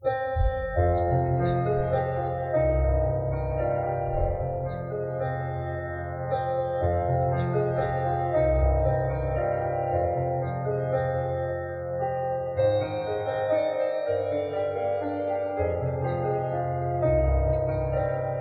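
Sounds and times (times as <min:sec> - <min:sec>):
piano music: 0:00.0 - 0:18.4.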